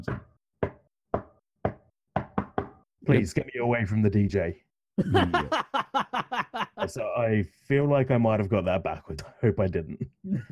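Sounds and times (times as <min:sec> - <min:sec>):
sharp wooden knocks tapping out Morse code SOS: 0:00.0 - 0:02.8
speech: 0:03.1 - 0:10.5
laughter: 0:05.0 - 0:07.0, 0:10.3 - 0:10.5.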